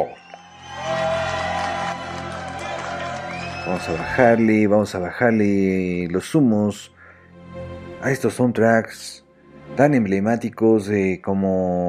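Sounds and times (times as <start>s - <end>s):
crowd clapping: 0.0s - 4.8s
speech: 3.7s - 7.0s, 8.0s - 9.2s, 9.8s - 11.8s.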